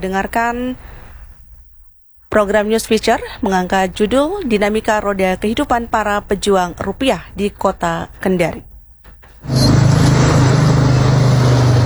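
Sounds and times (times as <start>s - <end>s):
speech: 0.0s - 0.9s, 2.3s - 8.7s
street traffic engines roaring in Kendari: 9.5s - 11.8s.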